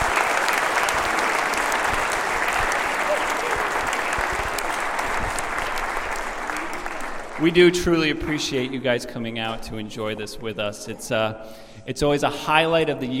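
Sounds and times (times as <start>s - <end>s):
audience applause for children's performance: 0.0s - 8.1s
speech: 7.4s - 13.1s.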